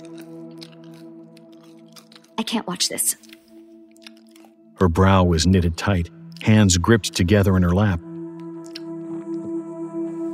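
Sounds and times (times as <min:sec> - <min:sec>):
person chewing peanut M&M candies: 0:00.0 - 0:04.8, 0:08.3 - 0:09.4
speech: 0:02.4 - 0:03.3, 0:04.8 - 0:08.1.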